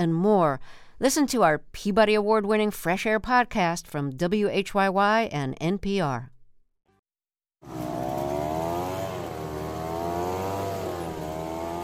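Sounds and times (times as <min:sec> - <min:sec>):
speech: 0:00.0 - 0:06.3, 0:07.6 - 0:08.1
gas-powered leaf blower: 0:07.6 - 0:11.8.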